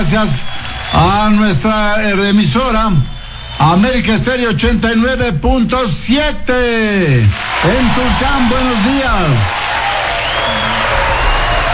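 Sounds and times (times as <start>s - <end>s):
audience applause: 0.0s - 2.4s, 7.3s - 11.7s
speech: 0.0s - 9.6s.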